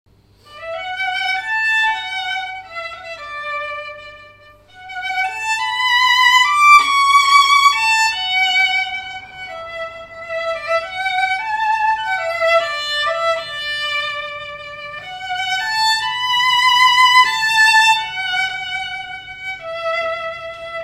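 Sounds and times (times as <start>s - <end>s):
ensemble playing: 0.4s - 20.8s.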